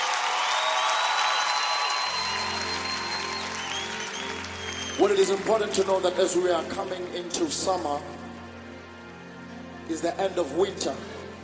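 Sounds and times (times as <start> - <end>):
audience applause: 0.0 - 6.5
speech: 5.0 - 8.2, 9.9 - 11.1.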